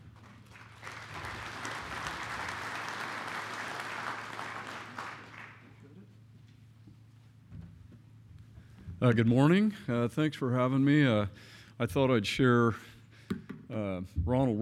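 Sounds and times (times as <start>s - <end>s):
audience applause welcoming a bank's senior vice president in Oregon: 0.0s - 5.9s
speech: 9.0s - 12.9s, 13.8s - 14.6s.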